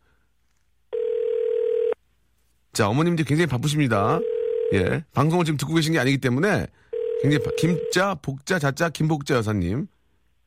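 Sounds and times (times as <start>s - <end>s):
telephone ringback tone during call: 0.9s - 2.0s, 4.2s - 4.8s, 6.9s - 8.0s
speech: 2.8s - 10.0s.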